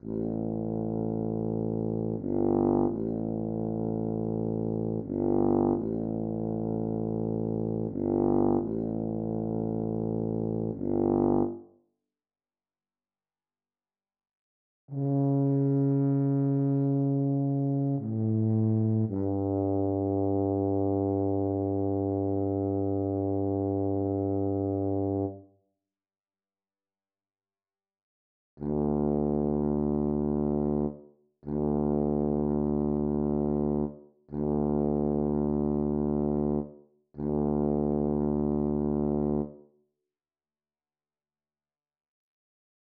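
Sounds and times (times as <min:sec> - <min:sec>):
tuba: 0:00.0 - 0:11.6, 0:14.9 - 0:25.5, 0:28.6 - 0:39.7.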